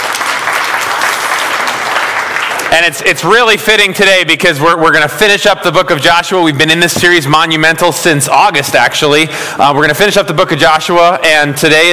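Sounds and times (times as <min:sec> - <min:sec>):
audience applause: 0:00.0 - 0:03.0
speech: 0:02.8 - 0:11.9.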